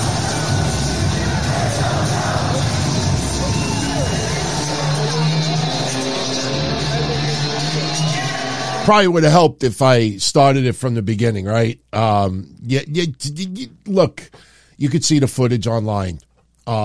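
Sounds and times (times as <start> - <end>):
crowd cheering and singing along: 0.0 - 8.9
speech: 8.9 - 16.8.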